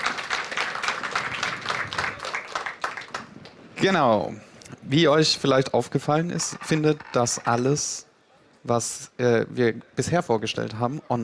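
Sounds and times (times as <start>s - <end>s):
audience applause: 0.0s - 3.7s
speech: 3.8s - 11.2s.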